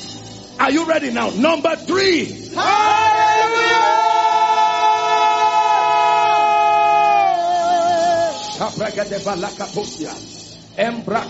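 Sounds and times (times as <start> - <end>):
speech: 0.6 - 3.1, 8.6 - 11.2
audience shouting together: 2.6 - 8.6.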